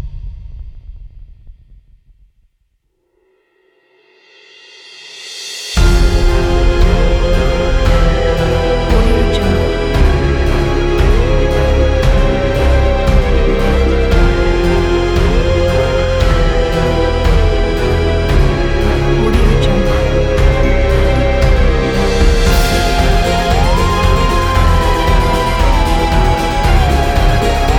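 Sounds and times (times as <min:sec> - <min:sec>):
spooky fun Halloween music: 0:05.7 - 0:27.7.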